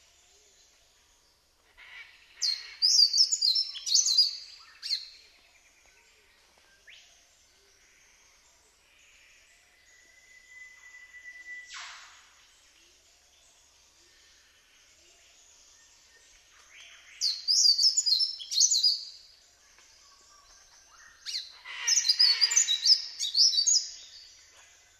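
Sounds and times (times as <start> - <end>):
yellow-throated scrubwren song: 0.0 - 24.9.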